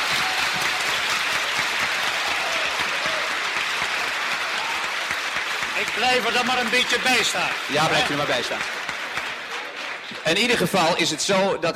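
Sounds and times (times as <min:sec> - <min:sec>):
applause in parliament: 0:00.0 - 0:11.4
speech: 0:05.8 - 0:08.8, 0:10.2 - 0:11.7.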